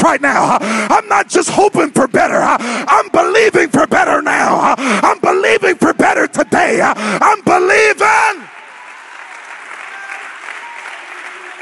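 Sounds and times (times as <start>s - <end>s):
speech: 0.0s - 8.0s
audience clapping: 8.4s - 11.6s.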